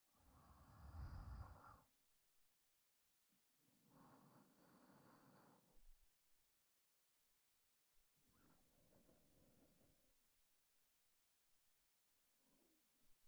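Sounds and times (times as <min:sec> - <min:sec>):
person breathing in sleep: 0:00.2 - 0:01.9, 0:03.8 - 0:05.8.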